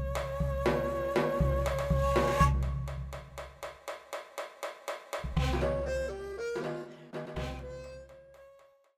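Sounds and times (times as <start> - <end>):
daegeum bamboo flute playing: 0.0 - 2.9, 5.4 - 8.9.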